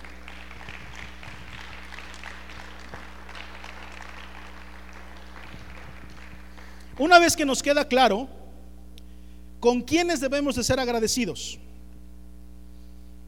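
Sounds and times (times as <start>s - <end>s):
audience applause: 0.0s - 7.1s
speech: 7.0s - 8.4s, 9.6s - 11.6s.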